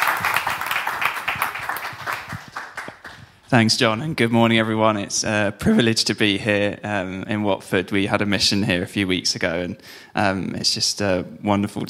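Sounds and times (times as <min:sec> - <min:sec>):
audience applause welcoming a speaker: 0:00.0 - 0:03.2
speech: 0:03.5 - 0:11.8.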